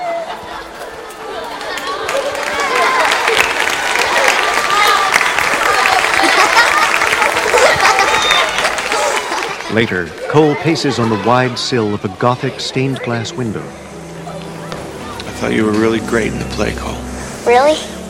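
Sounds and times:
laughter: 0.0 - 12.0
crowd chatter in a school auditorium: 0.0 - 18.0
audience clapping in a school auditorium after a children's play: 0.9 - 10.3
speech: 9.8 - 13.8, 15.4 - 17.9.

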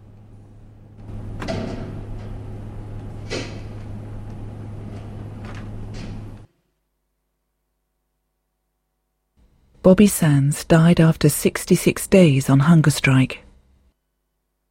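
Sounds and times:
constant low hum: 0.0 - 14.4
prison van doors and prison doors shutting: 1.0 - 4.0
speech: 9.9 - 13.4.

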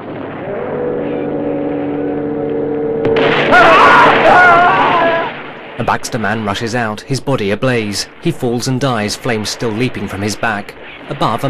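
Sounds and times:
steady humming drone: 0.0 - 5.8
speech: 5.8 - 11.4.

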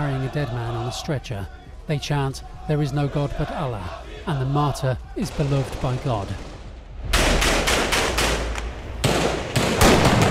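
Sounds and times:
speech: 0.2 - 6.5
rifle fired into the air: 5.4 - 10.2.

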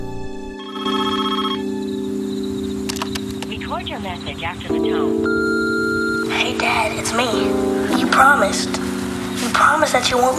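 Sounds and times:
telephone ringing: 0.5 - 8.7
speech: 3.8 - 5.4, 6.4 - 8.9, 9.5 - 10.3.

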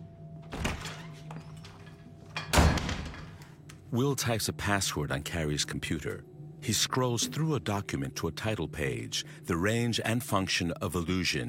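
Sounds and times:
faint low hum: 0.0 - 11.4
door thuds: 0.4 - 1.8, 2.4 - 3.5
speech: 3.9 - 11.4.

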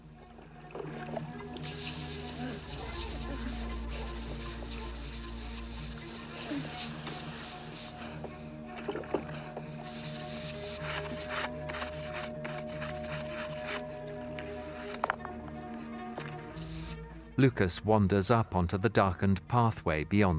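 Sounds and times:
rough scrubbing against a hard wet surface: 0.8 - 8.2, 8.8 - 15.1
speech: 17.4 - 20.3.

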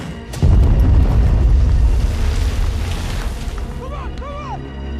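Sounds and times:
nearby bomb explosion: 0.3 - 3.7.

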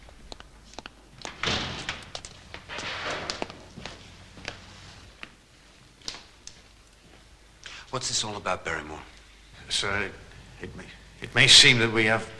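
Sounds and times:
front door opening: 1.3 - 4.0
speech: 8.0 - 12.3.

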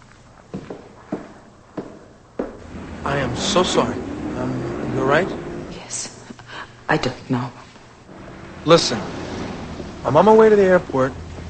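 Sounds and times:
footsteps of a man walking: 0.0 - 3.0
faint hiss: 0.0 - 11.4
speech: 3.0 - 6.1, 6.9 - 7.6, 8.6 - 9.2, 10.0 - 11.2.

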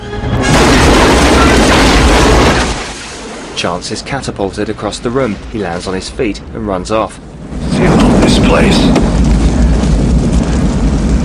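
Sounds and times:
grenade explosion in an action film scene: 0.4 - 3.7, 7.3 - 11.2
speech: 3.6 - 9.2.

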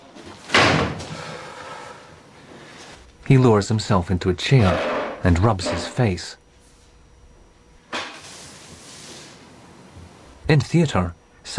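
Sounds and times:
door being shut: 0.5 - 1.0
speech: 3.3 - 6.4, 10.5 - 11.5.

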